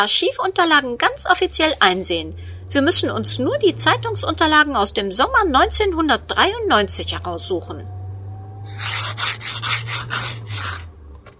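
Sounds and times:
speech: 0:00.0 - 0:08.0
scraping ice off car window: 0:08.7 - 0:10.9.

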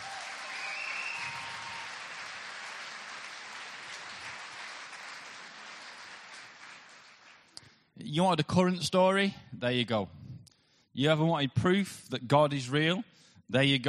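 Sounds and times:
cheer or whistle: 0:00.0 - 0:02.0
audience applause: 0:00.0 - 0:07.5
speech: 0:08.0 - 0:10.2, 0:11.0 - 0:13.8.

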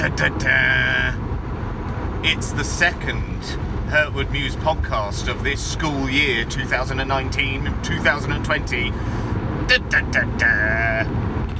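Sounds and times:
speech: 0:00.0 - 0:01.3, 0:02.2 - 0:11.5
car engine and road rumble while driving: 0:00.0 - 0:11.5.

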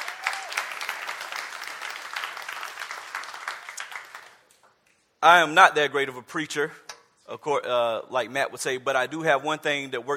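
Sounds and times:
audience applause: 0:00.0 - 0:04.5
speech: 0:05.2 - 0:10.1.

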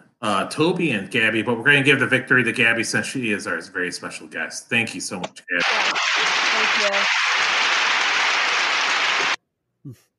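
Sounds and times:
person's voice: 0:00.0 - 0:07.1, 0:09.9 - 0:10.1
speech: 0:00.2 - 0:07.8, 0:09.8 - 0:10.1
crowd applause: 0:05.6 - 0:09.4.

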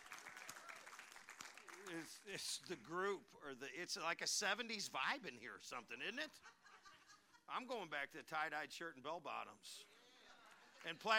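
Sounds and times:
crowd of people clapping in a room: 0:00.0 - 0:02.8
speech: 0:01.8 - 0:06.6, 0:07.5 - 0:09.9, 0:10.8 - 0:11.1.

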